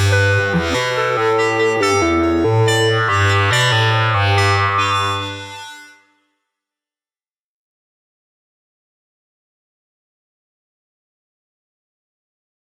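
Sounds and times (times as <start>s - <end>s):
Buchla synthesizer: 0.0s - 6.2s.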